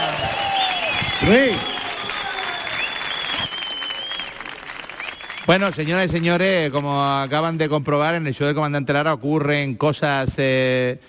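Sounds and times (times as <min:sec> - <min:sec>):
audience clapping at a comedy show at the Auditorio Cartuja: 0:00.0 - 0:08.4
high whistle-like tone: 0:00.2 - 0:04.3
speech: 0:01.2 - 0:01.7, 0:05.5 - 0:11.0.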